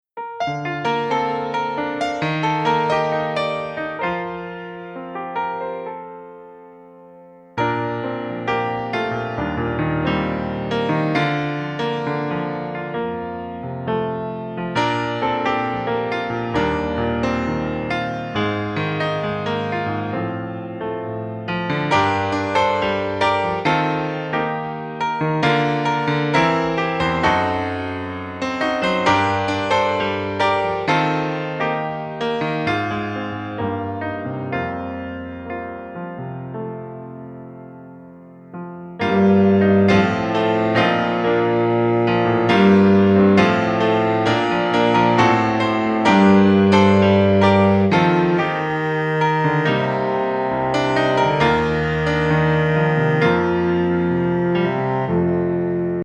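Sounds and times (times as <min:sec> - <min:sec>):
instrumental music: 0:00.0 - 0:56.0.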